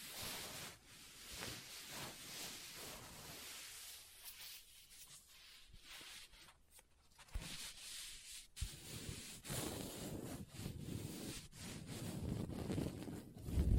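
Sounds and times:
hands scratching and rubbing a book's paper and cover: 0.0s - 13.7s.

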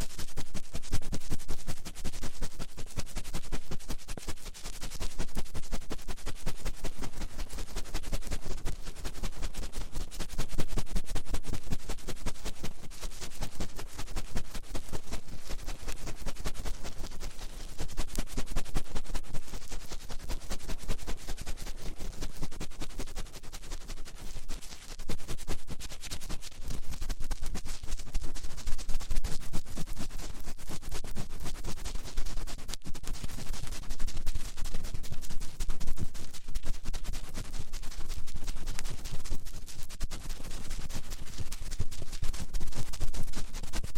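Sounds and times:
fast finger ear cleaning rubbing and scratching: 0.0s - 43.9s.

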